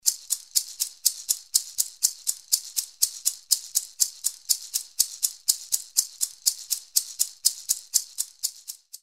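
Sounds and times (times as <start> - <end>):
maracas: 0.0 - 9.0.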